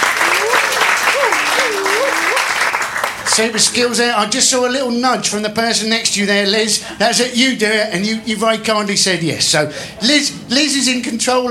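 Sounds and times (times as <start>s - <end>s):
audience applause: 0.0s - 3.9s
speech: 3.4s - 11.4s.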